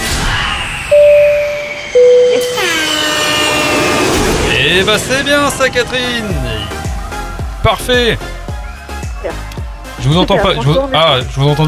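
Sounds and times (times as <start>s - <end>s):
airplane taking off: 0.0s - 8.4s
speech: 4.8s - 6.5s, 7.6s - 8.4s, 9.2s - 11.6s.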